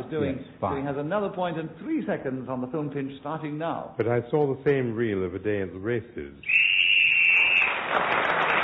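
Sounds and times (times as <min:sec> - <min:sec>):
speech: 0:00.0 - 0:06.7, 0:07.9 - 0:08.5
whistle signalling time is up: 0:06.4 - 0:07.8.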